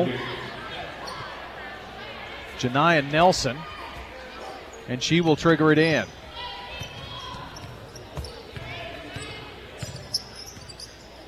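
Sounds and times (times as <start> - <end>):
speech: 0.0 - 0.3, 2.6 - 3.8, 4.9 - 6.2
sports commentary: 0.0 - 11.2
basketball dribbled on the court during a women's game: 6.8 - 10.7.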